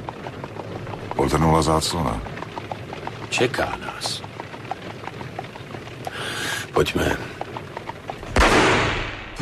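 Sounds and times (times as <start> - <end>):
speech: 1.2 - 2.4, 3.3 - 4.3, 6.8 - 7.3
gunshot in a radio drama: 8.4 - 9.3.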